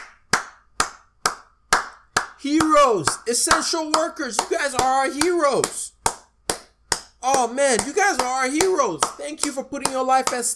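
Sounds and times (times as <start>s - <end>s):
people clapping for essential workers: 0.0s - 10.5s
speech: 2.4s - 6.0s, 7.2s - 10.5s.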